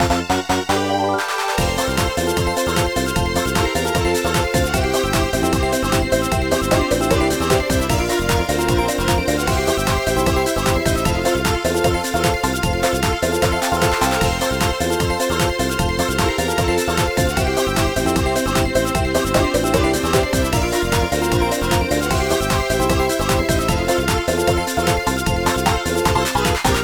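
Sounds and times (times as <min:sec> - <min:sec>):
bonus time background game music: 0:00.0 - 0:26.8.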